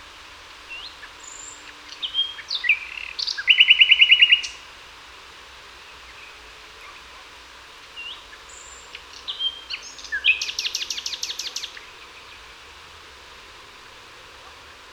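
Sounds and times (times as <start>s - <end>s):
common nightingale Luscinia megarhynchos singing: 0.7s - 4.6s, 8.0s - 12.6s.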